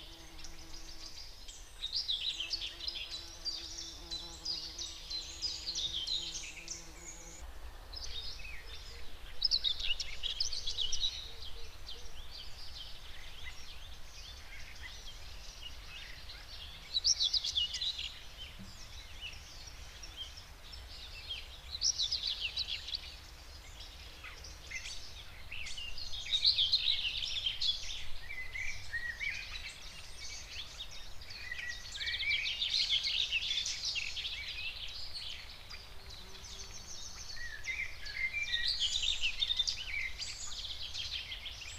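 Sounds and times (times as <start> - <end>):
common whitethroat singing in the Spreewald: 0.0 - 41.7.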